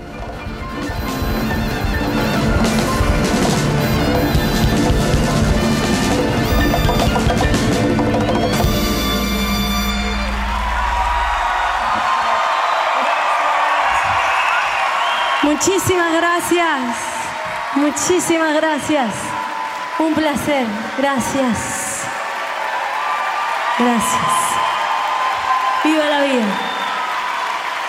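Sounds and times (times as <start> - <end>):
audience applause after a live concert performance: 0.0 - 9.1, 9.8 - 27.8
live concert instrumental music: 0.0 - 10.8
speech: 16.4 - 17.0, 17.8 - 19.3, 20.0 - 21.7, 23.8 - 24.4, 26.0 - 26.7.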